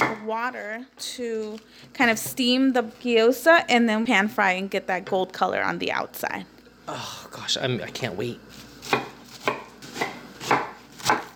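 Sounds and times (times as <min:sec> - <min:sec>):
speech: 0:00.2 - 0:09.0
knife chopping garlic on cutting board: 0:08.8 - 0:11.3.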